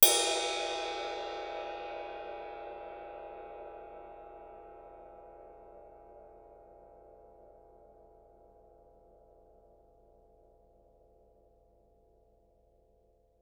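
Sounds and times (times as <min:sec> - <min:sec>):
ride cymbal hit with stick fortissimo: 0:00.0 - 0:02.7.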